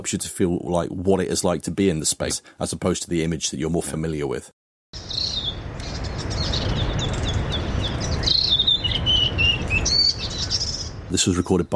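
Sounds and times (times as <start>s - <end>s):
speech: 0.0s - 5.0s, 11.1s - 11.7s
dawn chorus of birds after two days of hard rain: 5.0s - 11.1s.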